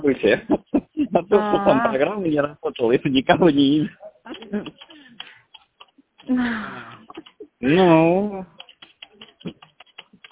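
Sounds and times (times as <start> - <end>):
speech: 0.0 - 4.9, 6.3 - 8.6
laughter: 0.2 - 2.2
typing on a computer keyboard: 4.3 - 6.3, 7.0 - 7.4, 8.5 - 10.2.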